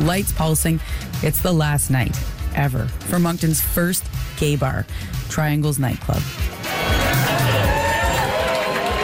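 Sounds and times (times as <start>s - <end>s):
speech: 0.1s - 6.5s
loud crowd partying in a packed nightclub: 6.6s - 9.0s.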